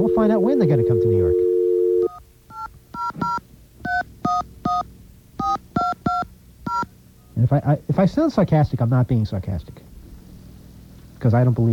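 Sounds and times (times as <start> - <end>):
telephone touch-tone keypad dialing tones: 0.0 - 4.8, 5.4 - 6.9
speech: 0.2 - 1.5, 7.4 - 9.9, 11.2 - 11.7.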